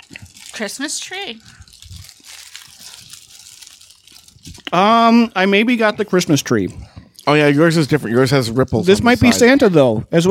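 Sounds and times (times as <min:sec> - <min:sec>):
steady crinkly hiss: 0:00.0 - 0:04.7
person eating peanut butter candy: 0:00.0 - 0:05.0, 0:06.5 - 0:07.7
speech: 0:00.6 - 0:01.6, 0:04.7 - 0:10.3.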